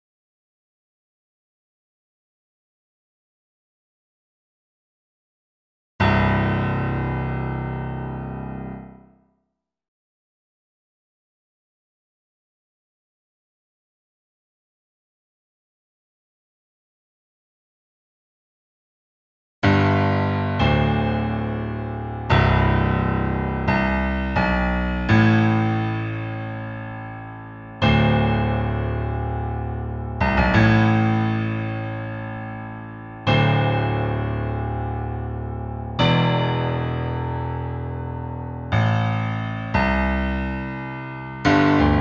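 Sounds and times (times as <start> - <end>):
piano: 6.0 - 9.4, 19.6 - 41.9.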